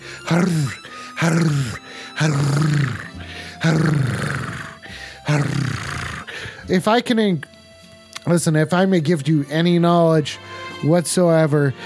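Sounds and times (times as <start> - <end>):
person making low throat growls: 0.0 - 6.6
speech: 0.3 - 4.4, 5.3 - 5.8, 6.7 - 7.5, 8.2 - 11.8.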